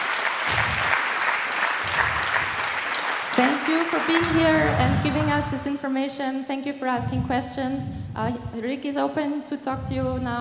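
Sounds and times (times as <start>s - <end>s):
audience applause: 0.0s - 5.6s
speech: 3.4s - 10.3s.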